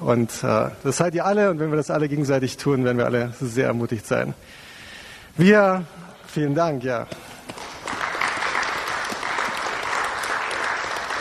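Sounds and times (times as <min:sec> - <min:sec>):
speech: 0:00.1 - 0:04.7, 0:05.4 - 0:07.7
audience applause: 0:07.5 - 0:11.1.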